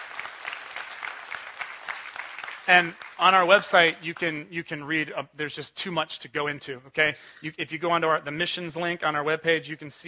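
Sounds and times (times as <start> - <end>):
audience clapping: 0.0 - 4.4
speech: 2.7 - 10.0.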